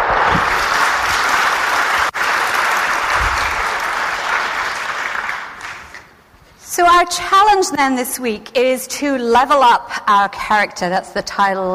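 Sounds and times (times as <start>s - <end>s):
audience applause: 0.0s - 6.1s
speech: 6.8s - 11.7s.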